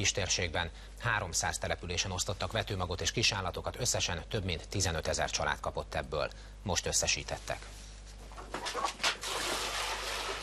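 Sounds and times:
speech: 0.0s - 7.8s
fresh water poured out for chickens: 9.2s - 10.4s.

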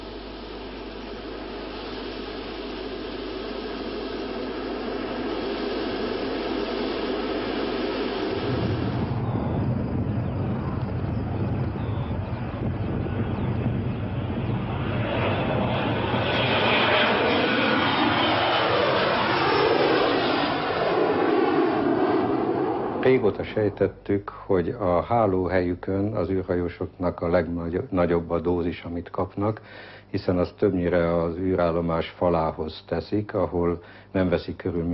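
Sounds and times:
aircraft taking off: 0.0s - 25.5s
speech: 23.3s - 34.9s.

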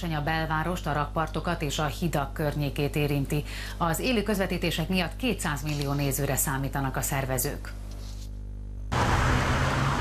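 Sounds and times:
speech: 0.0s - 7.8s
road traffic from a long queue of cars on the Budapest embankment: 8.9s - 9.9s.

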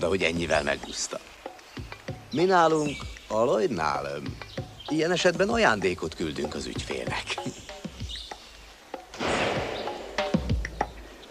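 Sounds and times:
speech: 0.0s - 1.4s, 2.3s - 7.6s
gunshot: 9.1s - 10.5s
scattered thuds: 9.2s - 10.6s.

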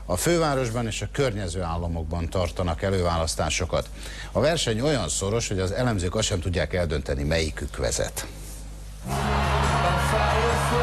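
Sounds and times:
speech: 0.1s - 8.4s
crowd cheering for Barack Obama at a US presidential primary rally: 9.0s - 10.8s.

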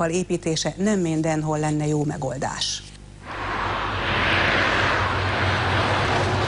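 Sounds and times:
speech: 0.0s - 2.9s
truck driving past on Nagykörösi road: 3.3s - 6.4s.

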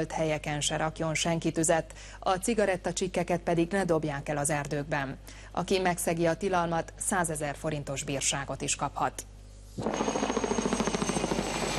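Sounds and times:
speech: 0.0s - 10.3s
firefighting helicopter rotor beating: 9.8s - 11.7s.

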